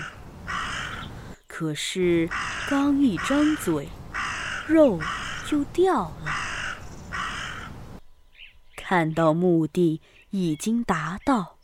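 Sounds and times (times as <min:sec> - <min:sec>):
crow cawing: 0:00.0 - 0:01.4, 0:02.2 - 0:08.0
speech: 0:01.6 - 0:04.0, 0:04.7 - 0:06.4, 0:08.9 - 0:11.6.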